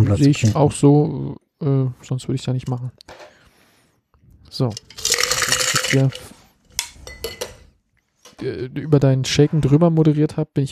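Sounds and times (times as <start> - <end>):
speech: 0.0 - 3.3, 4.5 - 5.0, 5.9 - 6.4, 8.4 - 10.6
stirring a cocktail in a glass: 4.8 - 7.6.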